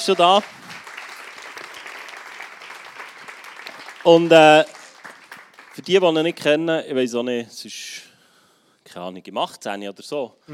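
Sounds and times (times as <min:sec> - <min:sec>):
speech: 0:00.0 - 0:00.6, 0:04.0 - 0:04.8, 0:05.8 - 0:08.1, 0:08.9 - 0:10.5
audience applause: 0:00.0 - 0:06.4.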